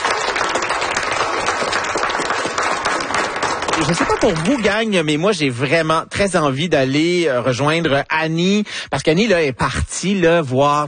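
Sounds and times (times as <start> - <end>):
audience applause: 0.0 - 4.8
speech: 3.8 - 10.8.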